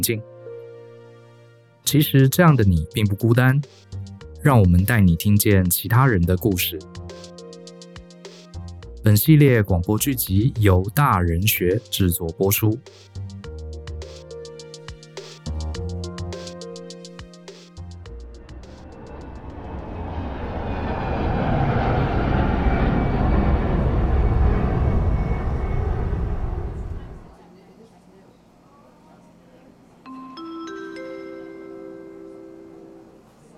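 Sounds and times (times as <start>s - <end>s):
speech: 0.0s - 0.3s, 1.8s - 7.3s, 9.0s - 13.1s
aircraft jet engine roar at an airport boarding gate: 18.1s - 27.4s
airport gate bright tonal chimes: 30.1s - 33.2s.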